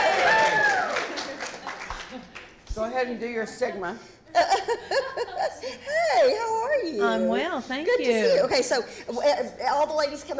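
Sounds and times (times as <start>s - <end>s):
applause: 0.0s - 2.6s
speech: 3.0s - 10.3s.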